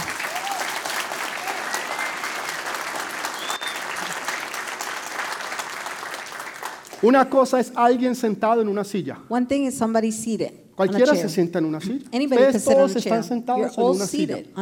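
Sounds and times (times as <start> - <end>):
audience applause: 0.0 - 7.1
speech: 7.0 - 14.6.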